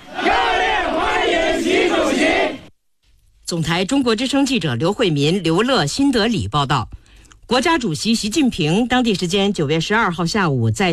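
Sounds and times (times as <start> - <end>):
crowd chanting in unison welcoming Xi Jinping in New Delhi: 0.0 - 2.7
speech: 3.5 - 10.9.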